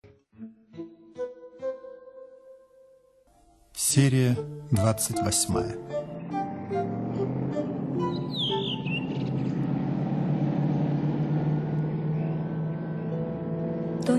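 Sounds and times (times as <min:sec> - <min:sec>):
speech: 0:03.9 - 0:06.1
car driving along a quiet road: 0:05.2 - 0:14.1.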